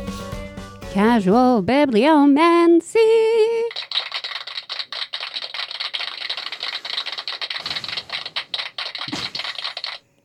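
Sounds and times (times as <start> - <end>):
speech: 0.9 - 3.7
group of people clapping: 3.7 - 10.0.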